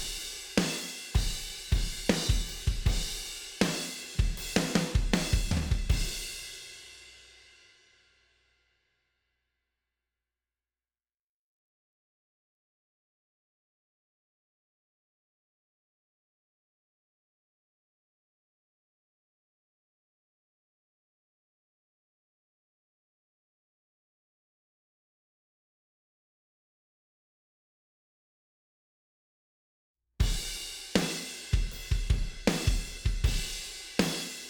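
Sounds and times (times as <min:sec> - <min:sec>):
drums: 0:00.0 - 0:07.7, 0:30.2 - 0:34.4.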